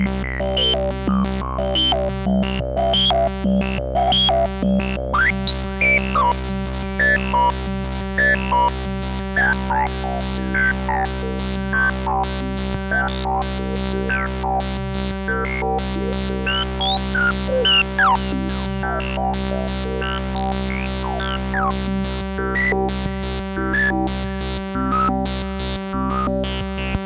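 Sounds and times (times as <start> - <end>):
analog synthesizer filter modulation: 0.1 - 27.0.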